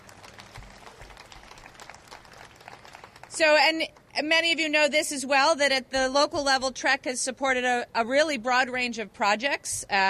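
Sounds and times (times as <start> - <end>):
audience clapping: 0.0 - 4.1
speech: 3.4 - 10.0.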